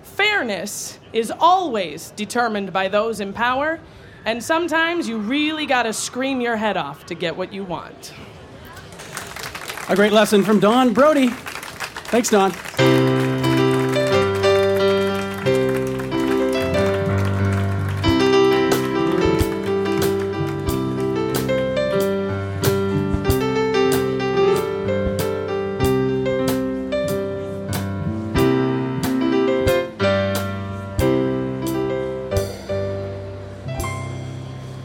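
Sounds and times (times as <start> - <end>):
speech: 0.4 - 8.4, 9.9 - 11.5, 12.1 - 12.7
live band playing a TV theme tune: 12.1 - 34.8.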